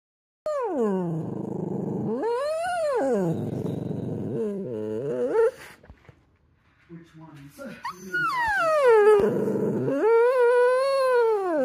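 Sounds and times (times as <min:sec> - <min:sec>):
dog howling: 0:00.5 - 0:05.5, 0:07.9 - 0:11.6.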